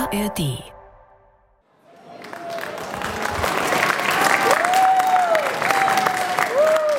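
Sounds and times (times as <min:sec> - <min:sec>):
speech: 0:00.1 - 0:00.7
locals applauding arriving refugees at train station: 0:01.8 - 0:06.9.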